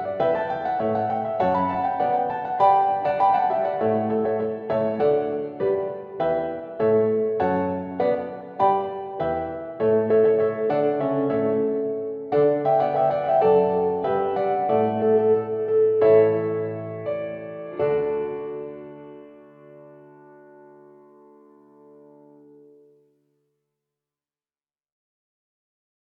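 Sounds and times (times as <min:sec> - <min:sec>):
musical accompaniment: 0:00.0 - 0:21.4.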